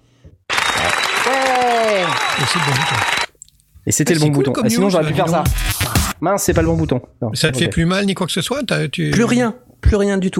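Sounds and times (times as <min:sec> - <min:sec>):
applause: 0:00.5 - 0:03.3
voice cheering: 0:00.5 - 0:03.3
speech: 0:02.4 - 0:03.2, 0:03.9 - 0:10.3.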